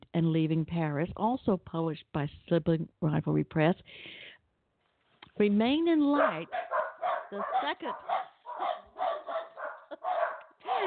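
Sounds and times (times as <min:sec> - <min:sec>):
speech: 0:00.2 - 0:04.3, 0:05.4 - 0:08.8
dog barking: 0:06.1 - 0:10.8.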